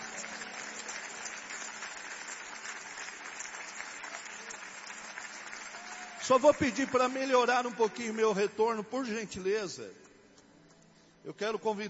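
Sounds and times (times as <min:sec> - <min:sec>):
audience applauding: 0:00.0 - 0:08.3
speech: 0:06.3 - 0:10.1, 0:11.2 - 0:11.8.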